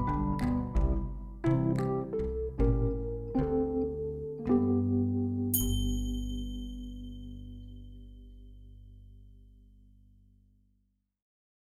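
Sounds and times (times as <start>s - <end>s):
Wurly electric piano: 0.0s - 8.7s.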